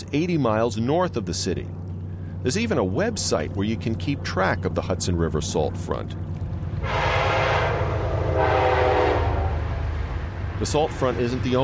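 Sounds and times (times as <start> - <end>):
train rumbling past: 0.0 - 11.6
speech: 0.1 - 7.0, 10.6 - 11.6
train horn blasts: 6.8 - 9.8.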